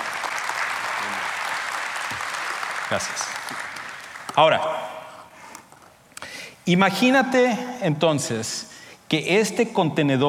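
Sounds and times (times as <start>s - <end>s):
audience applause: 0.0s - 4.4s
speech: 2.9s - 3.7s, 4.4s - 4.9s, 6.7s - 10.2s.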